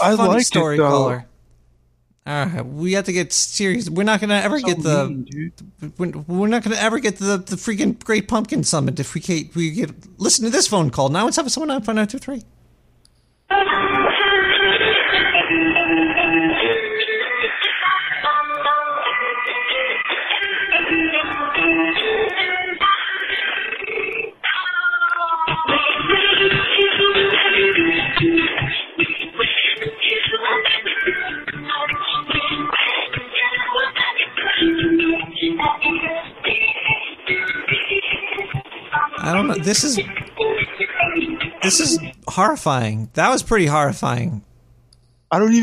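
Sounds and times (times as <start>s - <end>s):
speech: 0.0s - 1.3s, 2.3s - 12.6s, 39.3s - 40.2s, 41.6s - 44.5s, 45.3s - 45.6s
robotic voice singing Christmas music: 4.6s - 5.5s, 13.5s - 42.2s.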